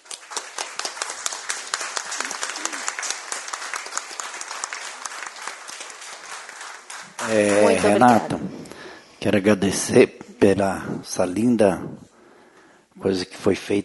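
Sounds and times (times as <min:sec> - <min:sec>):
applause: 0:00.0 - 0:08.5
speech: 0:07.3 - 0:08.6, 0:09.2 - 0:12.1, 0:13.0 - 0:13.8.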